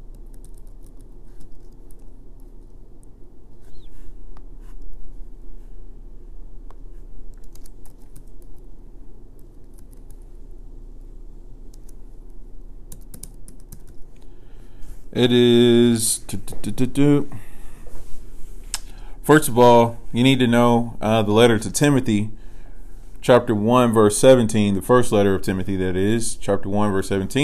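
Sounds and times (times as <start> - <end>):
low steady hum: 0.0 - 27.4
typing on a computer keyboard: 0.2 - 2.1, 7.4 - 8.6, 12.9 - 14.0
speech: 15.2 - 17.5, 19.3 - 22.4, 23.2 - 27.4.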